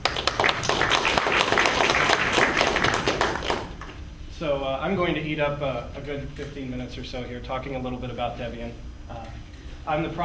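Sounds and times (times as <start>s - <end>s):
audience applause: 0.0s - 3.8s
speech: 4.4s - 10.2s.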